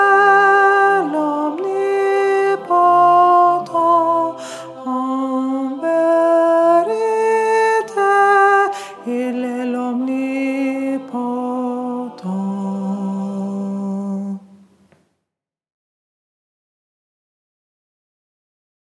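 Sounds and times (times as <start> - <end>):
alto voice singing in French SATB choral piece: 0.0 - 15.0.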